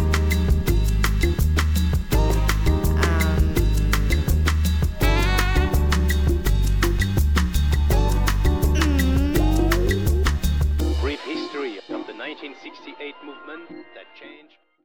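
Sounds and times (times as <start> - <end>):
lounge ambience: 0.0 - 11.0.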